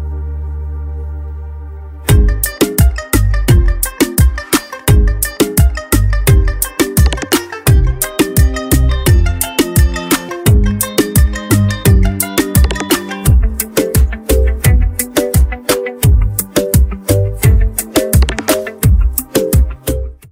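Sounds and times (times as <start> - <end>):
karaoke song: 2.1 - 20.2.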